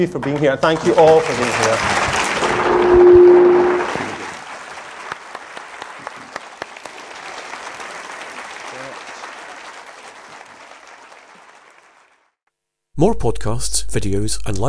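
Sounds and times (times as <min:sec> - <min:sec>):
speech: 0:00.0 - 0:03.0, 0:13.0 - 0:14.6
audience applause: 0:00.7 - 0:12.4.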